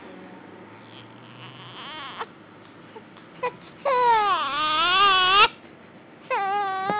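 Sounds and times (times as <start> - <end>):
hungry baby girl crying: 1.2 - 2.3, 3.4 - 5.6, 6.3 - 6.9.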